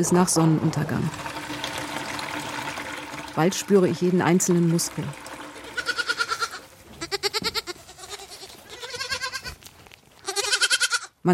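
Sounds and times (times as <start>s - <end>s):
speech: 0.0s - 1.4s, 3.4s - 5.2s
lambs and goat kids bleating in a wooden stable: 5.8s - 11.1s
quiet rustling: 6.7s - 10.3s.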